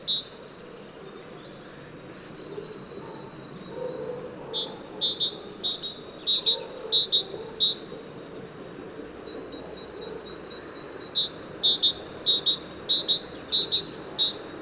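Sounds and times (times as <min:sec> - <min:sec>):
Great tit song of two-note whistles: 0:00.0 - 0:00.3, 0:04.5 - 0:07.8, 0:11.0 - 0:14.5.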